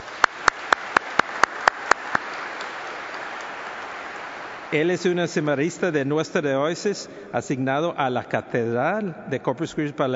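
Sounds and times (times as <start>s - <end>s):
people clapping: 0.0s - 5.4s
speech: 4.7s - 10.1s.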